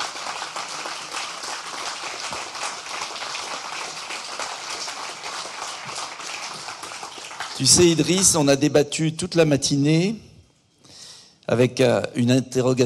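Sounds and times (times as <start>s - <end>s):
audience applause: 0.0s - 8.4s
speech: 7.6s - 10.3s, 11.5s - 12.8s.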